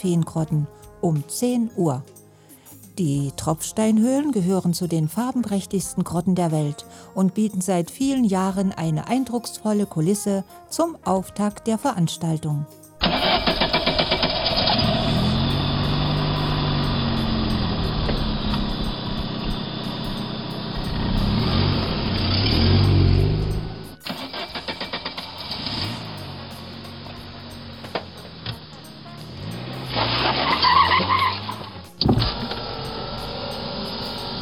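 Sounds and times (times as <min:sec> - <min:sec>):
speech: 0:00.0 - 0:02.2, 0:03.0 - 0:13.5
historic car engines revving and pulling away: 0:13.0 - 0:34.4.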